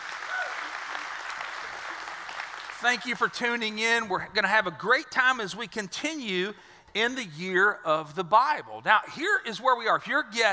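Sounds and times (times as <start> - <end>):
audience clapping hands: 0.0 - 3.6
speech: 2.8 - 10.5.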